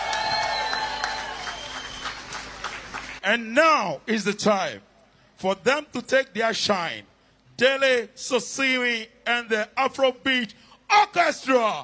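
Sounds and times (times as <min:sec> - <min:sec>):
audience applause: 0:00.0 - 0:03.2
speech: 0:03.2 - 0:11.8.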